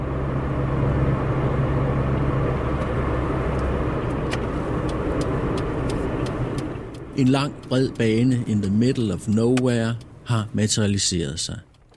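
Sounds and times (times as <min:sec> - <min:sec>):
small Hyundai driving on bumpy dirt road: 0:00.0 - 0:11.9
speech: 0:07.2 - 0:11.9.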